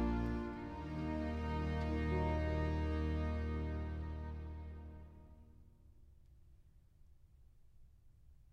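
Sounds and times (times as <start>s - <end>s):
concerto grosso in E minor andante adagio: 0.0s - 5.4s.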